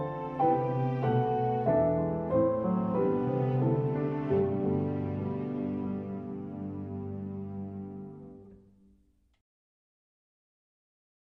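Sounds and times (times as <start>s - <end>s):
lullaby with strings: 0.0s - 8.1s.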